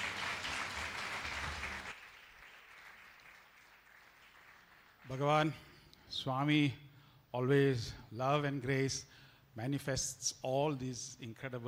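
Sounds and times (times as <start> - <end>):
audience applause welcoming a speaker: 0.0 - 5.2
speech: 5.1 - 11.6.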